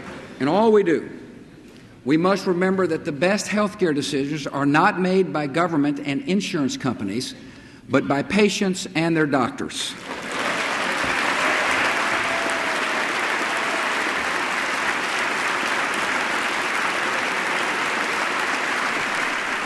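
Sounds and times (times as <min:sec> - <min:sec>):
speech: 0:00.4 - 0:01.2, 0:02.0 - 0:10.3
large crowd applause: 0:10.0 - 0:19.6.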